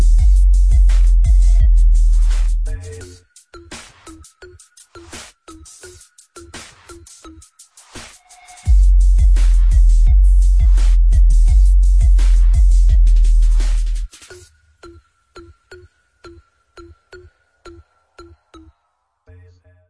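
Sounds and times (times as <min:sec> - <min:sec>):
boosted bass: 0:00.0 - 0:03.1, 0:08.7 - 0:14.1.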